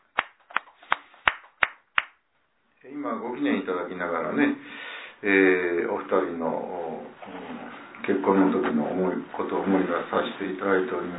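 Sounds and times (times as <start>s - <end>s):
sharp handclaps as birthday applause at a shrine gathering: 0.0s - 2.2s
speech: 2.8s - 11.1s.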